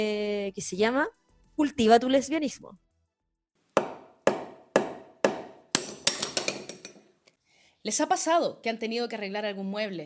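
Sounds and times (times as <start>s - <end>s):
speech: 0.0s - 2.8s, 7.8s - 10.0s
hammer striking: 3.8s - 7.0s.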